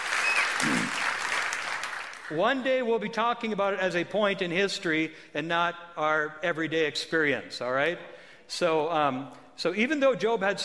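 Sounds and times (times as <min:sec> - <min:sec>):
audience hand clapping: 0:00.0 - 0:02.4
speech: 0:02.3 - 0:10.6.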